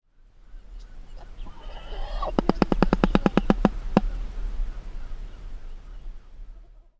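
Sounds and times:
shoebill call: 0:01.0 - 0:04.3.

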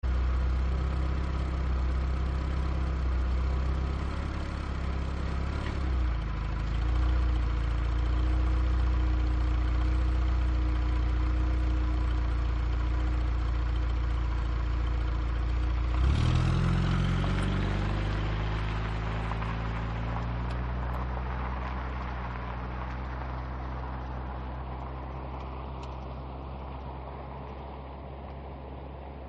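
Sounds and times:
car engine running: 0:00.0 - 0:29.2.

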